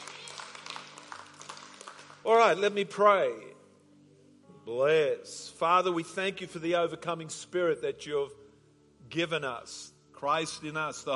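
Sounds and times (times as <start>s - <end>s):
audience clapping hands: 0.0s - 2.4s
speech: 2.2s - 3.6s, 4.7s - 8.4s, 9.1s - 11.1s.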